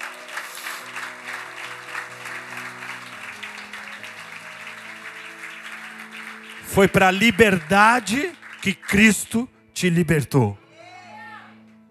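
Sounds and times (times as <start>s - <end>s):
audience applause: 0.0s - 9.5s
sustained keyboard or organ chords: 1.1s - 10.5s
speech: 6.7s - 10.6s.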